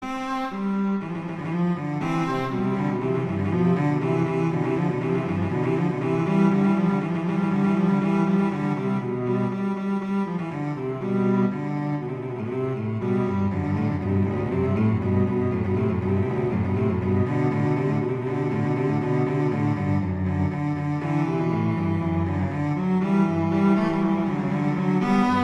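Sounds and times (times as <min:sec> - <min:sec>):
allegro classical piece: 0:00.0 - 0:25.4.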